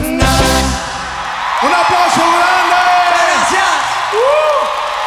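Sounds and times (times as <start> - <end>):
audience applause and cheering after song: 0.2 - 5.0.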